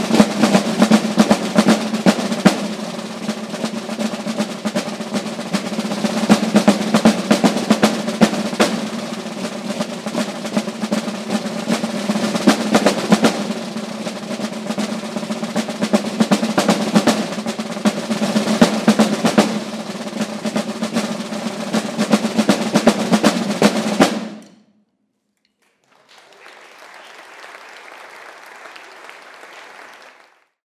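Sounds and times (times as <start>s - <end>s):
Swiss drummers drumming: 0.0s - 24.5s.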